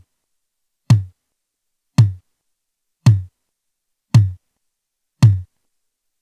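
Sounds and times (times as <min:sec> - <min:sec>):
drum PCM noise: 0:00.9 - 0:01.1, 0:02.0 - 0:02.2, 0:03.1 - 0:03.3, 0:04.2 - 0:04.4, 0:05.2 - 0:05.4.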